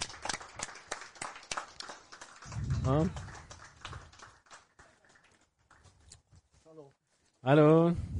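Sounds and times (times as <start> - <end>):
audience applause: 0.0 - 5.9
speech: 2.8 - 3.3, 7.4 - 8.1.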